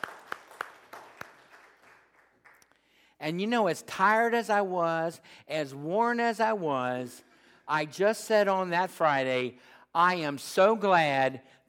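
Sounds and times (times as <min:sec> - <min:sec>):
audience applause: 0:00.0 - 0:02.6
speech: 0:03.2 - 0:11.6.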